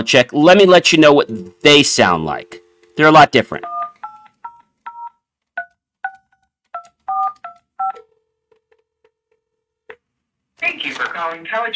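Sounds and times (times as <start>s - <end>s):
speech: 0.0s - 3.8s, 10.6s - 11.7s
touch-tone phone dialing a number: 3.6s - 10.0s.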